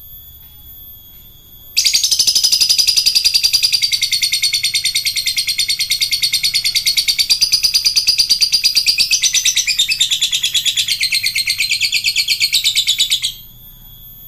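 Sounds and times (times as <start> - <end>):
lovebird singing in the ngekek style: 1.8 - 14.0.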